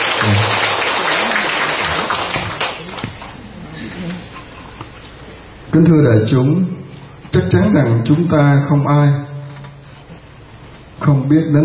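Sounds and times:
audience applause welcoming a monk: 0:00.0 - 0:03.4
speech: 0:05.8 - 0:09.2, 0:11.1 - 0:11.6.

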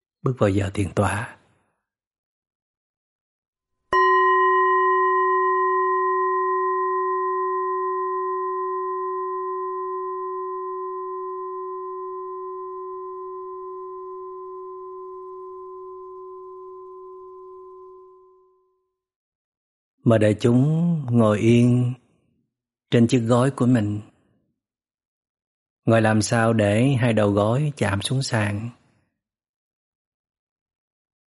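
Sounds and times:
speech: 0:00.2 - 0:01.4, 0:20.0 - 0:22.0, 0:22.9 - 0:24.1, 0:25.8 - 0:28.8
meditation bell ringing: 0:03.9 - 0:18.7.

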